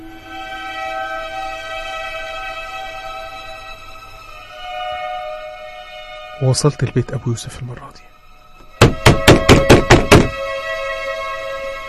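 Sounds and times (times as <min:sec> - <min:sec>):
speech: 0:06.4 - 0:08.1
knocking on a door: 0:08.8 - 0:10.4.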